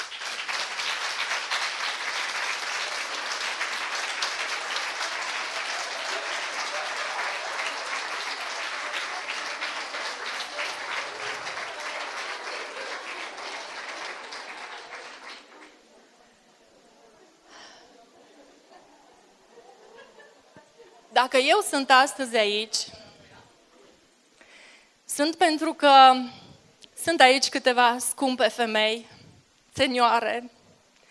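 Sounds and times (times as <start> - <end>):
audience applause: 0.0 - 16.2
laughter: 1.6 - 16.0, 17.1 - 21.1
speech: 21.2 - 23.0, 25.2 - 26.4, 27.0 - 29.1, 29.8 - 30.6.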